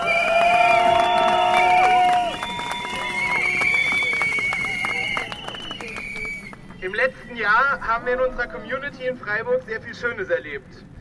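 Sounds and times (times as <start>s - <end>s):
audience applause at an outdoor rally: 0.0s - 6.8s
shrill sustained whistles: 0.0s - 7.6s
speech: 7.0s - 10.9s.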